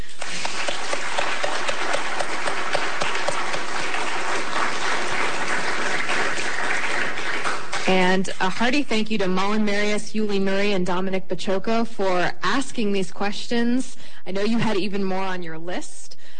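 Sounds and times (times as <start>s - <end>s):
audience applause: 0.0s - 8.0s
speech: 8.2s - 16.0s.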